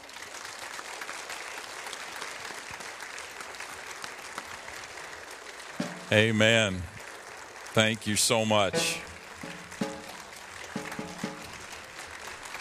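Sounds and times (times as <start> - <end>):
audience applause: 0.0 - 12.5
speech: 6.1 - 6.9, 7.8 - 9.1.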